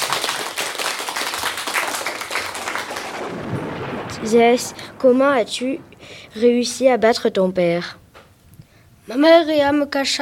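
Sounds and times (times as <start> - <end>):
applause: 0.0 - 4.2
speech: 4.2 - 8.0, 9.1 - 10.2.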